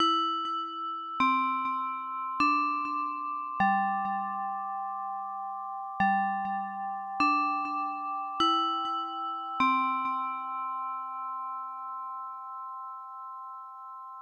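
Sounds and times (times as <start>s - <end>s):
chime: 0.0s - 14.2s.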